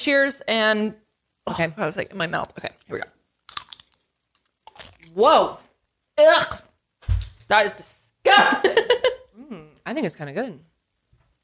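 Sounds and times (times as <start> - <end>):
speech: 0.0 - 3.2, 5.2 - 5.6, 6.2 - 6.6, 7.5 - 9.0, 9.9 - 10.7
Dorito tortilla chip being bitten and chewed: 3.4 - 5.1.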